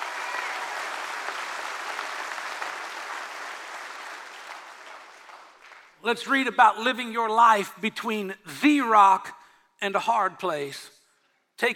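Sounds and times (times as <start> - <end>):
audience clapping: 0.0 - 6.0
speech: 6.0 - 11.0, 11.6 - 11.7.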